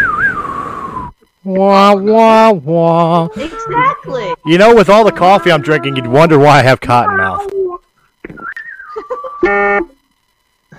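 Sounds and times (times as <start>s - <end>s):
speech: 1.5s - 7.6s, 9.4s - 9.9s
buzzer: 4.4s - 7.4s, 9.3s - 10.7s.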